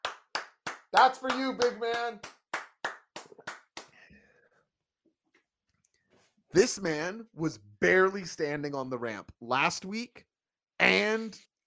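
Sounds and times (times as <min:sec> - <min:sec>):
one person clapping hands: 0:00.0 - 0:04.0
speech: 0:00.9 - 0:02.4, 0:06.5 - 0:11.5.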